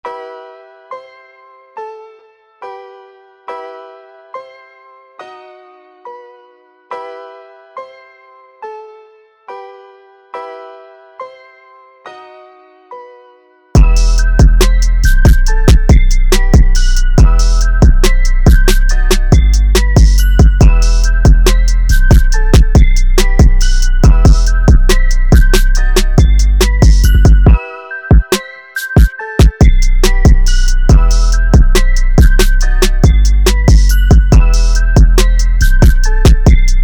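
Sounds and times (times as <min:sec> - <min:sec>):
beat: 0:13.8 - 0:36.8.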